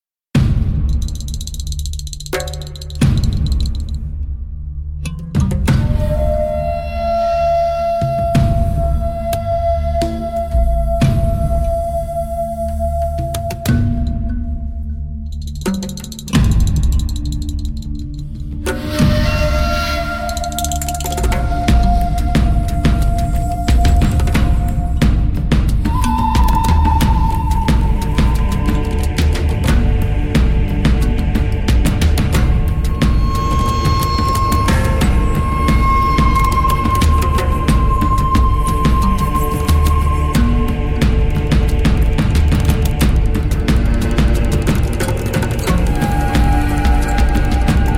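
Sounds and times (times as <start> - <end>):
instrumental music: 0.4 - 47.9.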